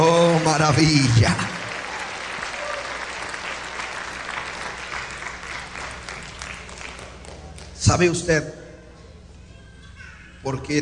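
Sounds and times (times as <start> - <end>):
audience applause: 0.0 - 7.8
speech: 0.6 - 1.6, 7.9 - 8.6, 10.4 - 10.8.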